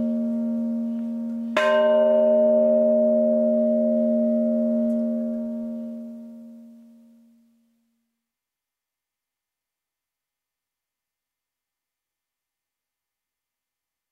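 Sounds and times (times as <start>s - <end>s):
bells ringing: 0.0s - 6.8s.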